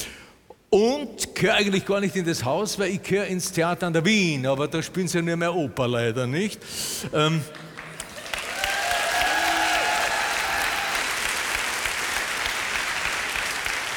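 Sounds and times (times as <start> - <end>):
speech: 0.7 - 7.7
audience applause: 7.6 - 13.9.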